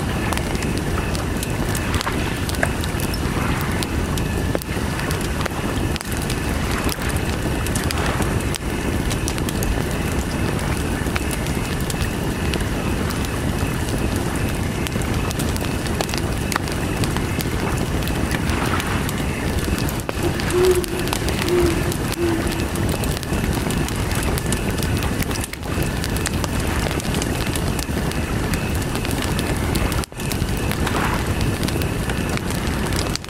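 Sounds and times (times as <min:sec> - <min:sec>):
crickets chirping: 0:00.0 - 0:28.7
campfire by the lake: 0:00.0 - 0:33.2
lake water: 0:00.0 - 0:33.2
owls hooting: 0:20.1 - 0:23.1.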